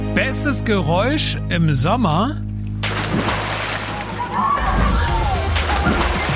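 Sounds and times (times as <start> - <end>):
speech: 0.1 - 2.5
splash of someone jumping into cold water: 2.8 - 6.3.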